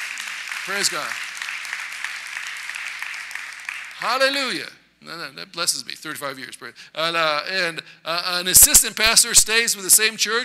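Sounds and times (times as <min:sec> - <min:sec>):
audience applause: 0:00.0 - 0:04.3
speech: 0:00.7 - 0:01.3, 0:04.0 - 0:10.4.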